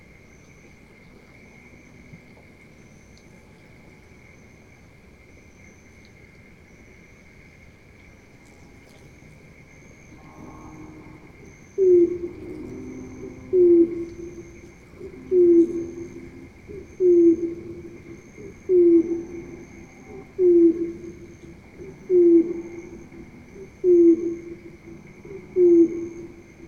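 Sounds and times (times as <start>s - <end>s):
heron, filtered: 10.1s - 26.6s.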